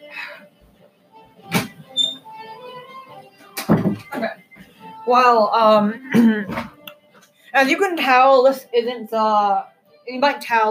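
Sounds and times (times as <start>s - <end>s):
door being closed: 1.5s - 2.2s
speech: 5.1s - 6.7s, 7.6s - 10.6s.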